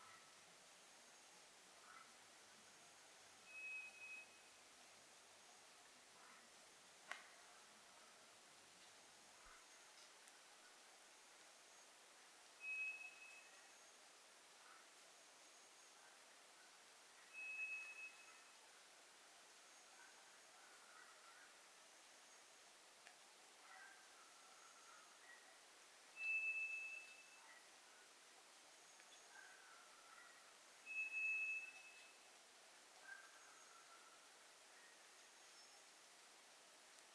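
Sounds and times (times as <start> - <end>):
faint chirps from other birds: 0.0 - 8.2, 8.8 - 37.1
White's thrush song: 12.6 - 13.5, 26.2 - 27.3, 30.8 - 32.1.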